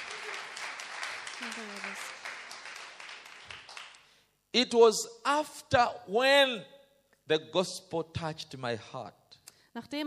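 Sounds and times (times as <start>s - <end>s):
audience clapping hands: 0.0s - 4.3s
speech: 1.4s - 2.2s, 4.5s - 9.2s, 9.8s - 10.0s.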